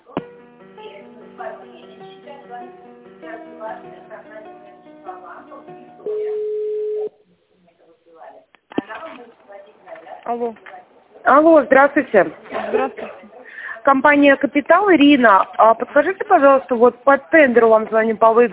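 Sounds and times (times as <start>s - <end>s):
telephone ringback tone while a call is transferred to another company: 6.0s - 7.1s
speech: 10.3s - 10.7s, 11.3s - 13.1s, 13.8s - 18.5s.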